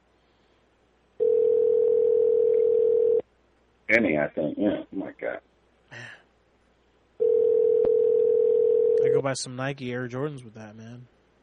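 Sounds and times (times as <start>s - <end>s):
telephone dial tone: 1.2s - 3.2s, 7.2s - 9.2s
speech: 3.9s - 6.2s, 9.0s - 11.1s.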